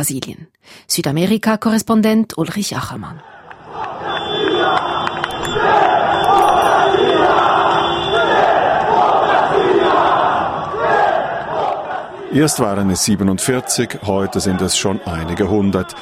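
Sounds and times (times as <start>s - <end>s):
speech: 0.0s - 3.9s, 12.3s - 15.9s
protest crowd shouting democracy chants: 3.2s - 15.9s.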